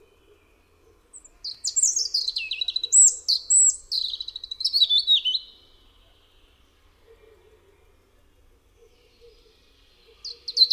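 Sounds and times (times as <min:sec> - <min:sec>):
European robin singing: 0:00.0 - 0:06.7, 0:08.9 - 0:10.7.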